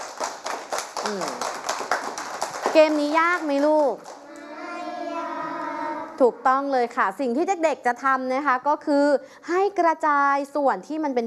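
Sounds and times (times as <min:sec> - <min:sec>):
children clapping for a friend during a classroom game: 0:00.0 - 0:05.2
speech: 0:01.1 - 0:01.5, 0:02.8 - 0:04.1, 0:06.2 - 0:11.2.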